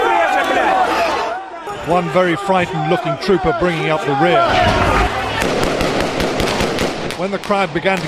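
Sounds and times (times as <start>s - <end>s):
crowd voices and commotion: 0.0s - 8.0s
speech: 1.9s - 5.6s, 7.2s - 8.0s
soldiers firing guns into the air: 4.4s - 8.0s.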